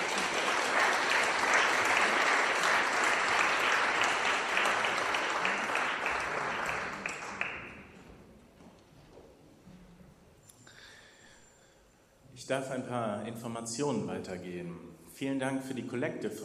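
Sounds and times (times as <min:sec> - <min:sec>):
audience applause: 0:00.0 - 0:08.0
speech: 0:12.5 - 0:16.4.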